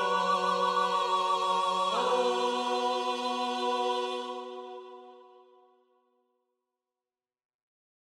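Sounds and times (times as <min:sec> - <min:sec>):
contrapuntal music: 0:00.0 - 0:05.2.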